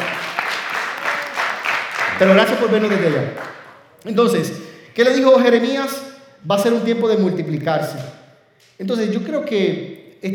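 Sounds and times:
audience applause: 0.0s - 3.8s
whoops and cheers: 0.8s - 1.6s
speech: 2.2s - 8.2s, 8.8s - 10.3s.

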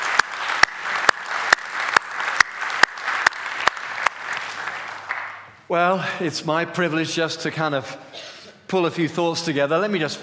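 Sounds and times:
audience applauding: 0.0s - 5.6s
speech: 5.7s - 10.2s.

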